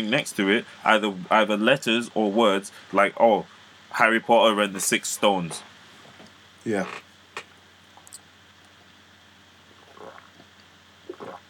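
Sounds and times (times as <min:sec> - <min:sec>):
speech: 0:00.0 - 0:05.7, 0:06.6 - 0:07.0
loud swallowing: 0:09.8 - 0:11.4.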